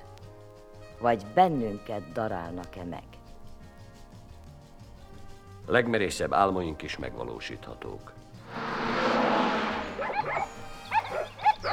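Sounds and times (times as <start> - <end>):
speech: 1.0 - 3.2, 5.7 - 8.6
steady rushing noise: 8.4 - 10.1
low rumble: 8.4 - 10.2
dog barks: 10.0 - 11.7.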